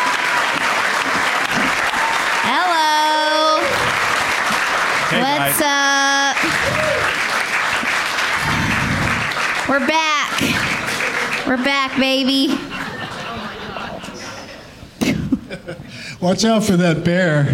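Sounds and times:
audience applause welcoming three comedy guests onto a show: 0.0s - 13.9s
speech: 9.7s - 10.1s, 11.5s - 12.8s, 16.2s - 17.5s
laughter: 10.3s - 11.5s, 12.3s - 16.0s.

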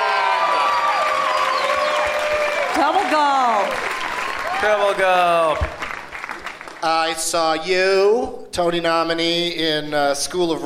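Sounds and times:
crowd cheering and whooping: 0.0s - 5.5s
crowd applauding: 0.0s - 7.5s
speech: 2.8s - 3.9s, 4.6s - 5.8s, 6.8s - 10.6s.

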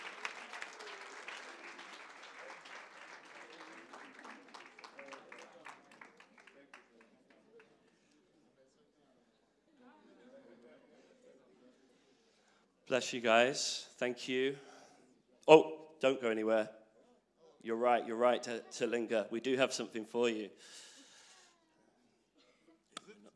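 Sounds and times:
audience applause for new members: 0.0s - 7.1s
speech: 12.9s - 14.7s, 15.5s - 16.8s, 17.6s - 20.9s.

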